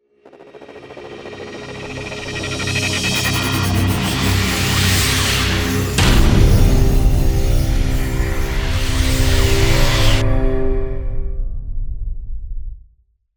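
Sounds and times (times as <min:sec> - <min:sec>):
hybrid transformation logo sound: 0:02.0 - 0:11.3.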